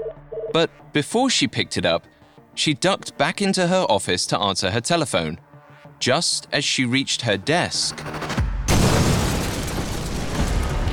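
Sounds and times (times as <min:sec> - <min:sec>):
speech: 0:00.5 - 0:05.4, 0:06.0 - 0:08.3
explosion shaking a building: 0:08.4 - 0:10.9
rumble and crackling debris from shrapnel bursting through a door: 0:08.7 - 0:10.9.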